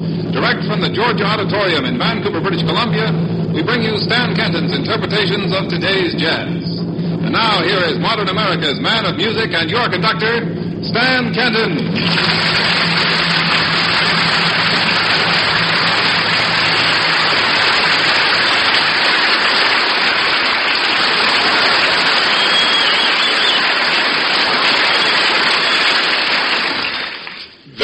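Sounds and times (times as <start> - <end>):
faint low hum: 0.0 - 22.7
speech: 0.5 - 6.7, 7.3 - 12.9
crowd applause being rehearsed: 12.0 - 27.8.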